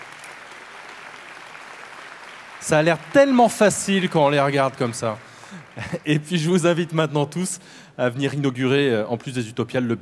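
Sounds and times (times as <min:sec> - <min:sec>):
audience applause for sign language interpreters at Utopiales exhibition opening: 0:00.0 - 0:06.2
speech: 0:02.6 - 0:10.0.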